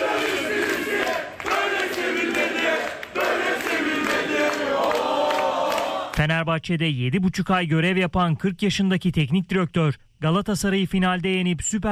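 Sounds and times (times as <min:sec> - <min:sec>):
football fans chanting at Istanbul Airport: 0:00.0 - 0:06.2
speech: 0:06.2 - 0:11.8.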